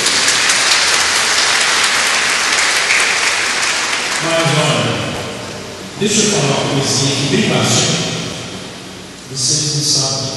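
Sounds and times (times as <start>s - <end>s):
audience applause: 0.0s - 5.0s
speech: 6.0s - 8.1s, 9.3s - 10.3s.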